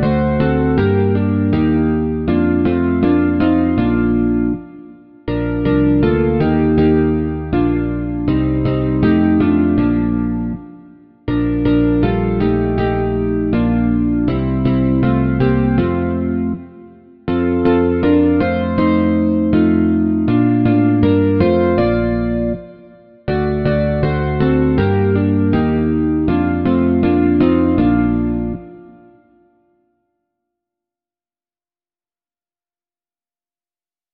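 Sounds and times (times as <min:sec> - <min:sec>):
bass guitar: 0:00.0 - 0:04.6, 0:05.3 - 0:10.7, 0:11.3 - 0:16.6, 0:17.3 - 0:22.7, 0:23.3 - 0:28.8.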